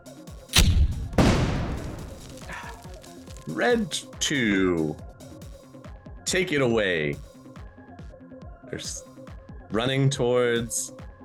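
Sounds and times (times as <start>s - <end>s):
grenade launcher firing in a Shadowrun tabletop game scene: 0.5s - 3.2s
speech: 3.5s - 5.1s, 6.3s - 7.3s, 8.7s - 9.1s, 9.7s - 11.0s.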